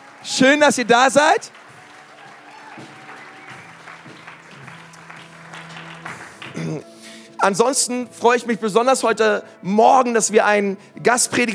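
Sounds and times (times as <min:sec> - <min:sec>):
crowd cheer: 0:00.0 - 0:06.4
audience applause: 0:00.0 - 0:06.8
speech: 0:00.3 - 0:01.6, 0:06.8 - 0:11.5.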